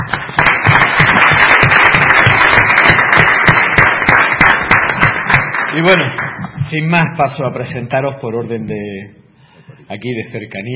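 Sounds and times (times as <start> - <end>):
audience applause: 0.0 - 6.6
speech: 5.8 - 9.2, 9.9 - 10.7.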